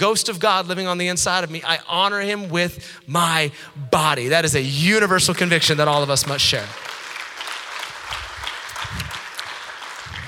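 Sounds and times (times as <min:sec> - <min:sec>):
speech: 0:00.0 - 0:06.9
audience applause: 0:06.2 - 0:10.2.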